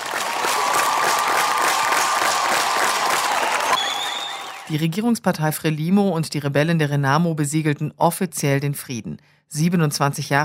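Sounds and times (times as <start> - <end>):
crowd applause at treaty signing: 0.0 - 4.7
speech: 4.7 - 10.4.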